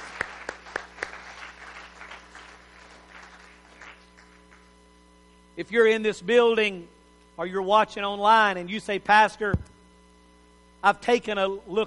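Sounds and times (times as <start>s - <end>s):
audience hand clapping: 0.0s - 4.7s
speech: 5.6s - 9.7s, 10.8s - 11.8s.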